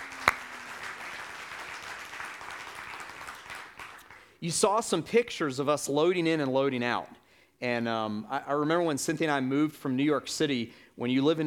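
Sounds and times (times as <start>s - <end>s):
audience applause at a morning church gathering: 0.0s - 4.2s
speech: 4.4s - 11.4s.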